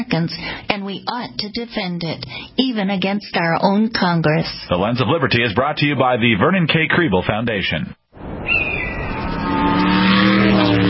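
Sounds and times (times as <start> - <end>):
speech: 0.0 - 8.6
powerful car driving along a Texas road: 8.2 - 10.8.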